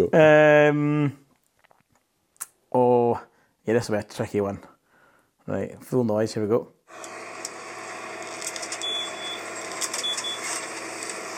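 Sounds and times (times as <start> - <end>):
speech: 0.0 - 1.2, 2.7 - 4.7, 5.5 - 7.2
high-pitched electronic vehicle reversing warning beeps: 8.8 - 9.4.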